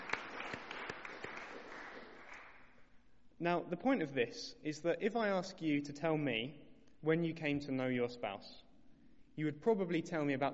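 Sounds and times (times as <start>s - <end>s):
audience applause: 0.0s - 2.6s
speech: 3.4s - 8.6s, 9.4s - 10.5s.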